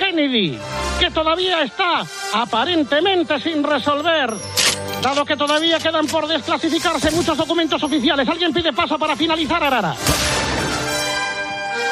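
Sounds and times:
speech: 0.2s - 10.3s
gunshot: 10.0s - 11.0s.

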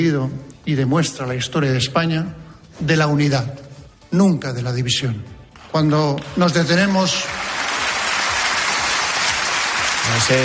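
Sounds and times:
speech: 0.0s - 7.4s, 10.2s - 10.4s
long applause after a speech: 5.6s - 10.4s.

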